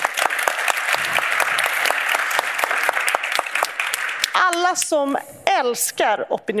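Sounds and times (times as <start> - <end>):
audience applause: 0.0 - 4.7
speech: 4.6 - 6.5.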